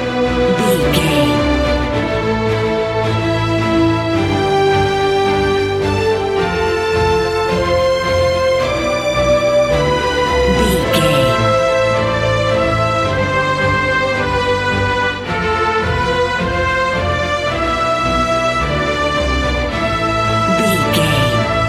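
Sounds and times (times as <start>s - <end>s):
epic cinematic music without drums: 0.0s - 21.6s.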